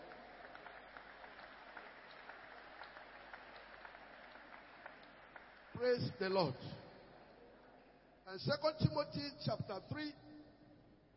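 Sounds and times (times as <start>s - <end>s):
audience clapping hands: 0.0s - 6.8s
speech: 5.8s - 6.9s, 8.3s - 10.2s.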